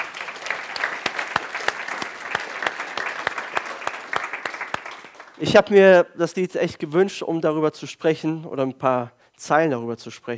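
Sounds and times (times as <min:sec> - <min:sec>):
audience applause for the choir: 0:00.0 - 0:05.5
speech: 0:05.4 - 0:10.3.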